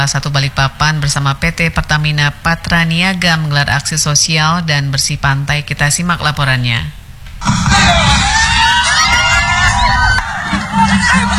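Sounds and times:
speech: 0.0 - 8.4
residents laughing at Pantai Seraya beach, Balikpapan: 7.4 - 11.3.

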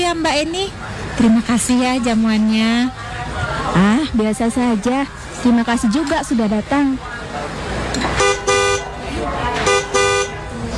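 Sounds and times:
speech: 0.1 - 3.1, 3.8 - 7.6
car horn honking loudly: 8.0 - 10.7.

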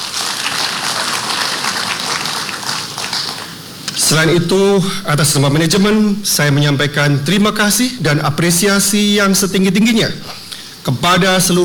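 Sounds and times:
audience applause at a formal corporate gathering: 0.0 - 4.1
speech: 4.1 - 11.6.

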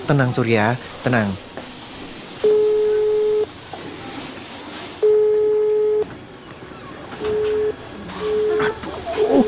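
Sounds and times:
speech: 0.1 - 1.5
phone busy tone beeps: 2.4 - 3.5, 5.0 - 6.1, 7.2 - 9.4.

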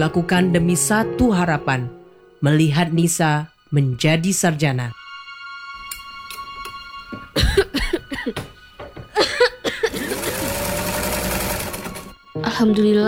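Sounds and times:
speech: 0.0 - 5.0, 12.6 - 13.0
person coughing: 7.4 - 8.5, 9.2 - 10.4
laughter: 9.1 - 10.8
sewing machine whirring: 9.9 - 12.2.

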